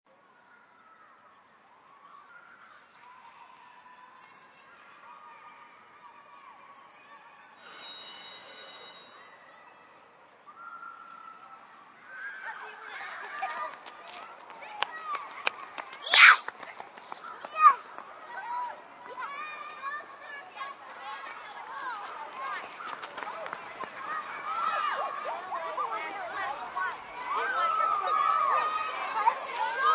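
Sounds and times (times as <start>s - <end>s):
more than ten children playing in a schoolyard at recess: 0.1s - 29.9s
school bell ringing: 7.6s - 9.7s.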